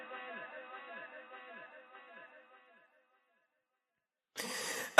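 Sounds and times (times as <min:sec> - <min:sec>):
music: 0:00.0 - 0:03.2.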